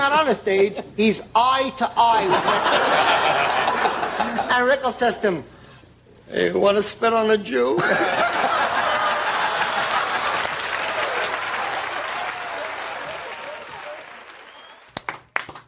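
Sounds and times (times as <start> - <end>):
speech: 0.3 - 5.6, 6.3 - 8.8
laughter: 2.1 - 4.6, 7.8 - 14.1
audience applause: 8.8 - 15.6.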